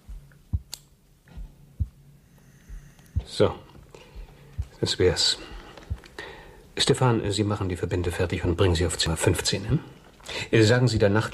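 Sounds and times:
surgical scissors snipping during an operation: 0.6s - 1.0s
speech: 3.3s - 3.7s, 4.8s - 5.5s, 6.8s - 11.3s.

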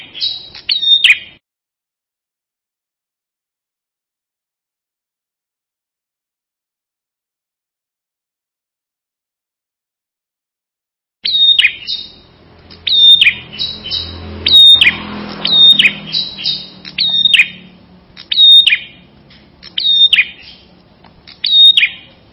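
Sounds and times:
prinia song with sharp high chirped phrases and trilled passages: 11.2s - 22.3s.

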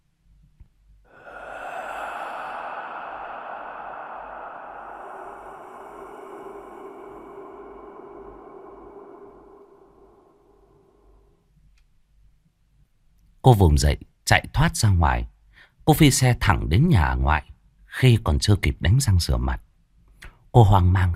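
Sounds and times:
person breathing gently behind a woman in a bathroom: 1.0s - 11.6s
speech: 13.4s - 15.3s, 15.9s - 19.7s, 20.5s - 21.1s.

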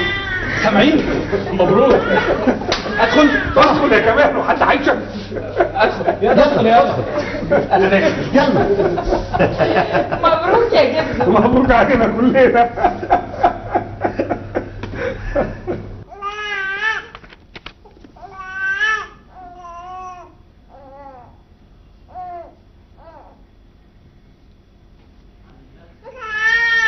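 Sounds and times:
baby crying: 0.0s - 0.8s, 1.7s - 4.0s, 16.1s - 17.2s, 18.2s - 21.4s, 22.1s - 23.4s, 26.0s - 26.8s
laughter: 0.4s - 16.0s
speech: 0.6s - 13.3s.

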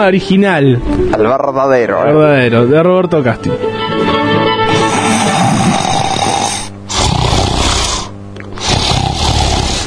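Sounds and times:
speech: 0.0s - 4.5s
loud rasping snores in long drawn breaths: 4.7s - 9.8s.

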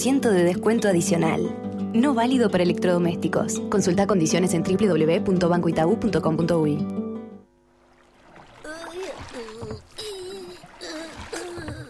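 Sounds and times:
speech: 0.0s - 7.0s
small rowing boat being rowed through water: 7.5s - 11.8s.

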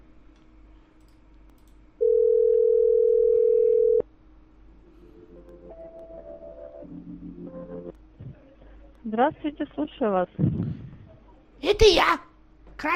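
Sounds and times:
faint low tonal humming: 0.0s - 12.9s
telephone dial tone after a call is hung up: 2.0s - 4.0s
speech: 9.1s - 10.8s, 11.6s - 12.9s.

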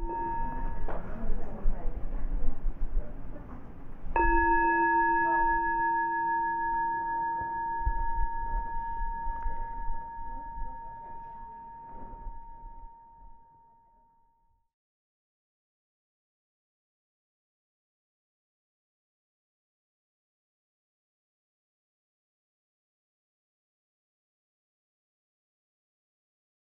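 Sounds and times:
meditation bell struck: 0.0s - 1.8s, 4.2s - 14.6s
soft murmuring background: 0.0s - 6.4s.

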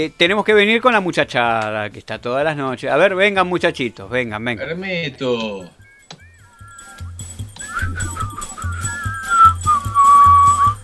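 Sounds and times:
speech: 0.0s - 5.8s
chorus of whistling: 5.7s - 10.8s
steady rhythmic low thumping beat: 5.8s - 10.8s.

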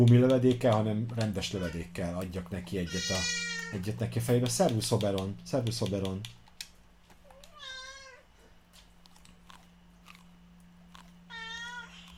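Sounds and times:
speech: 0.0s - 6.4s
cat meowing plaintively: 2.9s - 3.8s, 7.6s - 8.2s, 11.3s - 12.1s.

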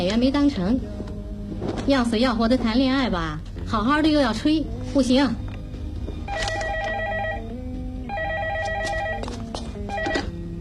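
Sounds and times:
speech: 0.0s - 1.0s, 1.6s - 5.4s
telephone ringing with an electronic warble: 6.2s - 10.4s.

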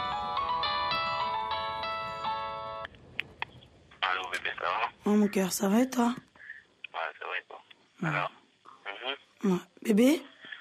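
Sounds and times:
woman's mobile phone ringtone playing a bright electronic melody: 0.0s - 2.9s
speech: 4.4s - 6.3s, 8.0s - 8.4s, 9.4s - 10.3s.

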